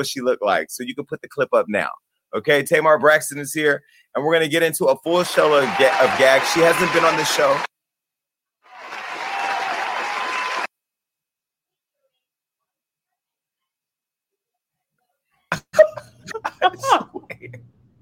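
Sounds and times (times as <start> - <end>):
speech: 0.0 - 7.7, 16.6 - 17.7
applause sound effect: 5.2 - 7.7, 8.7 - 10.7.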